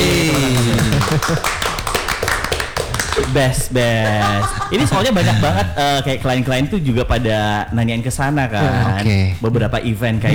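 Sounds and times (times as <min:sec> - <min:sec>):
hand clapping: 0:00.0 - 0:05.5
laughter: 0:00.0 - 0:10.3
speech: 0:01.3 - 0:01.6, 0:03.3 - 0:10.3.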